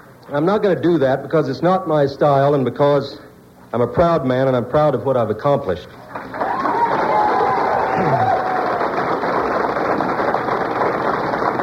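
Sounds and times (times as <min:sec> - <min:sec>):
speech: 0:00.3 - 0:06.4
audience applause and cheering: 0:06.1 - 0:11.6.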